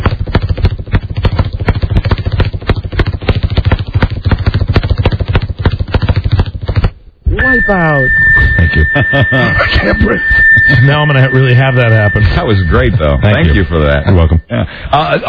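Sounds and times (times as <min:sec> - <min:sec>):
heartbeat: 0:00.0 - 0:06.9
speech: 0:07.7 - 0:08.2, 0:08.8 - 0:15.2.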